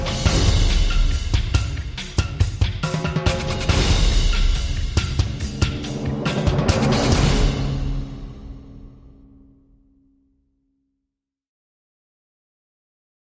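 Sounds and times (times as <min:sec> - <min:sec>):
drums: 0:00.0 - 0:09.6.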